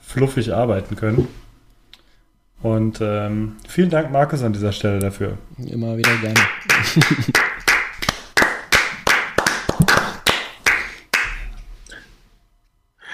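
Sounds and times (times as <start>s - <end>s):
speech: 0.1s - 1.4s, 2.6s - 7.4s
applause: 6.0s - 11.4s
laughter: 6.6s - 7.6s.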